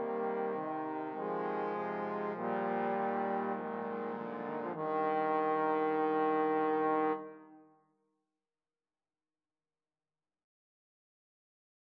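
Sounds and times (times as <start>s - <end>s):
trombone quartet playing: 0.0s - 7.4s.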